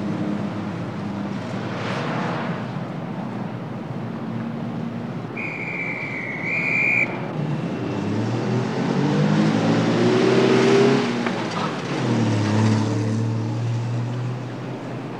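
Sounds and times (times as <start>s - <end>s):
city traffic: 0.0s - 15.1s
whistle: 5.3s - 7.3s.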